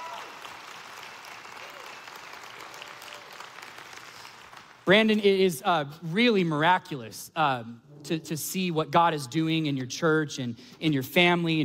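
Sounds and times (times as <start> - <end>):
crowd applauding: 0.0 - 4.9
speech: 4.9 - 11.6.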